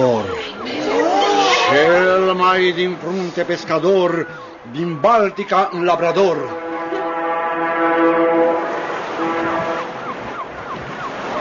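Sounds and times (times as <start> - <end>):
ship's siren wailing: 0.0 - 11.3
wind and sea noise: 0.0 - 11.3
speech: 2.5 - 6.6.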